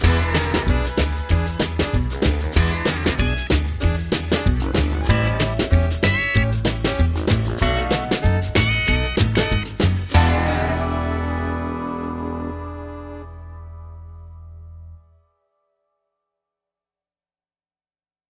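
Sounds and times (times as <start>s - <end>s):
rockabilly underscore music: 0.0s - 14.0s.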